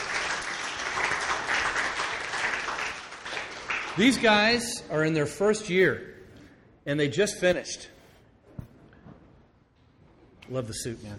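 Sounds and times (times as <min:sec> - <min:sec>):
audience applause: 0:00.0 - 0:04.5
speech: 0:04.0 - 0:06.1, 0:06.8 - 0:08.0, 0:10.5 - 0:11.1.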